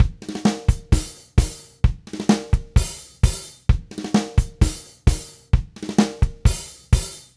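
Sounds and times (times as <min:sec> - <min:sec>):
tango Latin percussion drumset: 0:00.0 - 0:07.3.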